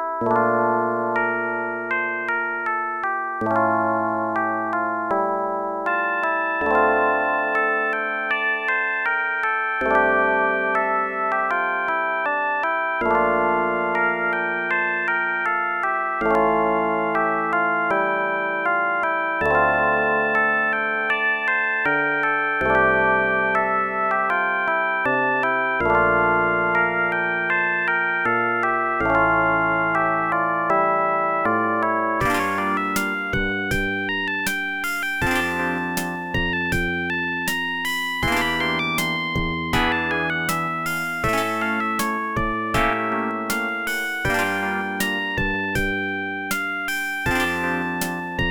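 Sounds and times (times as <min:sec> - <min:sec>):
AdLib OPL2 FM synth music: 0:00.2 - 0:48.5.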